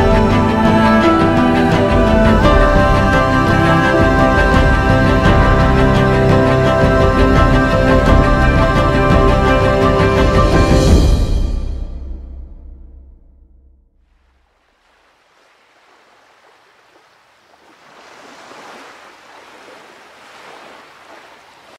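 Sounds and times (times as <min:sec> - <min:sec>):
cello: 0:00.0 - 0:11.6
piano: 0:00.0 - 0:13.7.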